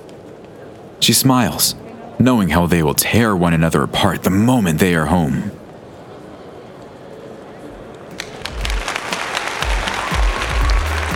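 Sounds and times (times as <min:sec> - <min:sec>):
speech: 0:01.0 - 0:05.6
crowd applauding performers: 0:08.1 - 0:11.1.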